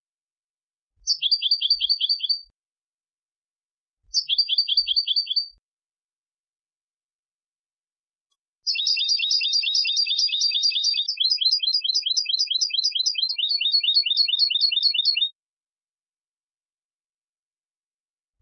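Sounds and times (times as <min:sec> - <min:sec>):
European goldfinch twittering: 0:01.0 - 0:02.4, 0:04.1 - 0:05.5, 0:08.7 - 0:15.3.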